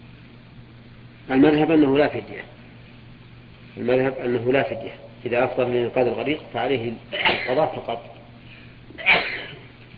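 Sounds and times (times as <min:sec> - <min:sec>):
low hum: 0:00.0 - 0:09.9
speech: 0:01.3 - 0:02.6, 0:03.8 - 0:08.2
sneeze during a religious lesson: 0:07.2 - 0:07.6, 0:09.0 - 0:09.6.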